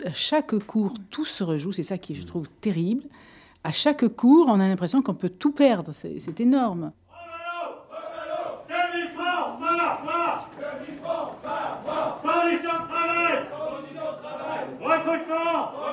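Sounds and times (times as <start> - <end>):
speech: 0.0 - 7.0
crowd shouting slogans in unison: 7.2 - 15.9.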